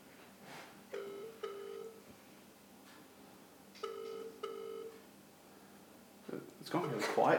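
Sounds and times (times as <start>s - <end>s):
telephone ringing: 1.0s - 2.0s, 3.8s - 5.0s
speech: 6.7s - 7.3s.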